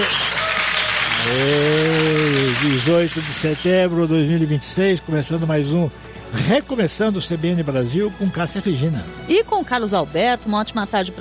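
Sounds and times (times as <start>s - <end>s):
studio applause: 0.0s - 4.0s
speech: 1.2s - 1.8s, 2.6s - 11.1s.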